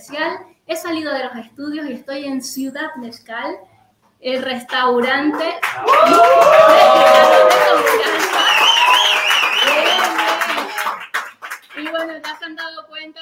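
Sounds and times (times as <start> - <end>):
speech: 0.0 - 9.8, 11.9 - 13.2
live audience cheering, whooping and clapping at a comedy show in Ciudad Mezcal restaurant: 5.6 - 11.9.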